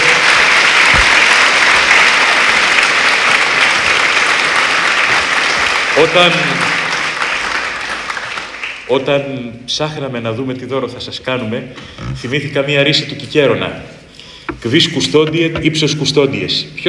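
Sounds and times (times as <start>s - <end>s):
audience applause: 0.0s - 8.9s
speech: 6.0s - 6.8s, 8.9s - 14.0s, 14.6s - 16.8s.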